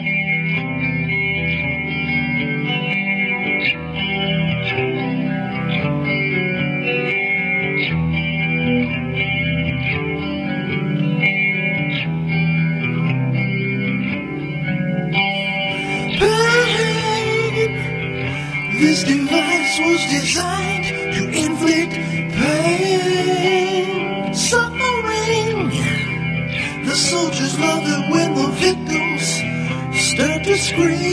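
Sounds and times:
heavy worship metal song with distorted guitars: 0.0s - 31.1s.

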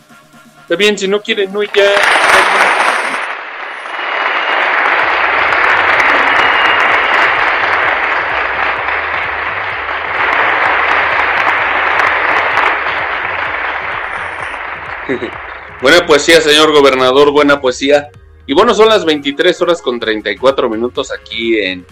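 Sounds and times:
speech: 0.7s - 2.4s, 15.1s - 21.9s
large crowd applauding: 1.6s - 17.2s
laughter: 14.9s - 15.7s.

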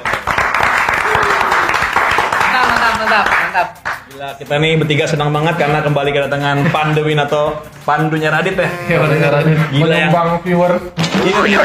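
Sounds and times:
applause: 0.0s - 4.1s
speech: 3.2s - 11.6s.

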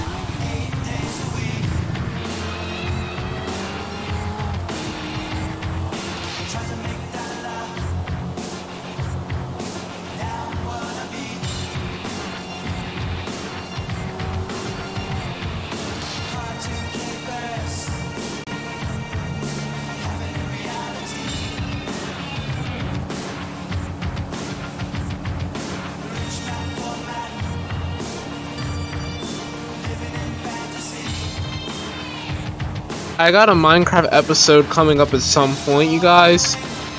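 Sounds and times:
Corvette C8 engine drone in a video game: 0.0s - 36.9s
speech: 33.2s - 36.7s.

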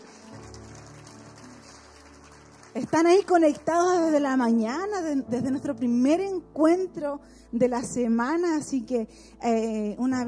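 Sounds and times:
audience applause: 0.0s - 3.6s
speech: 2.8s - 10.2s.

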